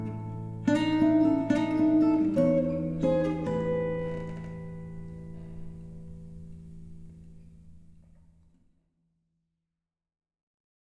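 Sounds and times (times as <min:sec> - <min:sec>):
blues in A: 0:00.0 - 0:07.8.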